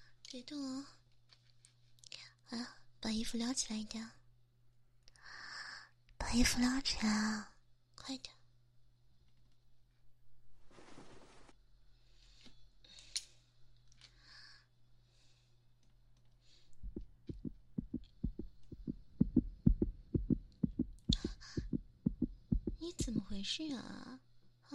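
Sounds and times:
speech: 0.3 - 1.0, 2.5 - 4.2, 6.3 - 8.4, 23.4 - 24.7
rustling and scratching: 10.6 - 11.5
fast heartbeat through a stethoscope: 16.8 - 23.4
low hum: 16.8 - 23.5.

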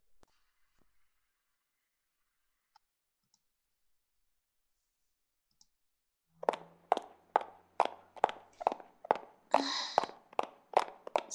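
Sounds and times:
footsteps walking outdoors in the cold: 6.4 - 11.3.

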